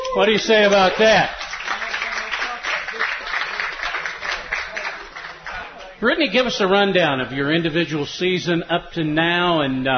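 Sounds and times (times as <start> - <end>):
round of applause: 0.0 - 6.0
speech: 0.2 - 1.4, 6.0 - 9.9.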